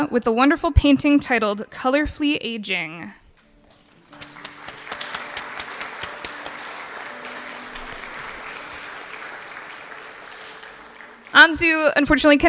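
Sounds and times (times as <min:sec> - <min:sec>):
speech: 0:00.0 - 0:03.2, 0:11.4 - 0:12.4
audience applause: 0:03.7 - 0:11.7.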